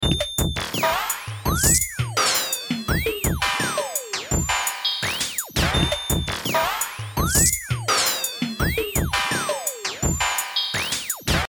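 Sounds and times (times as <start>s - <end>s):
stereo drum kit one-shots: 0.0s - 11.4s.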